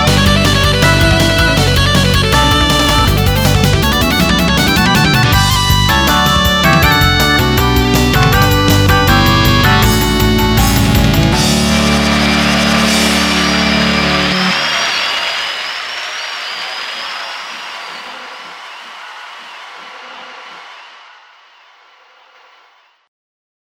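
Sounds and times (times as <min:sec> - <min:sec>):
fugue in D major: 0:00.0 - 0:14.8.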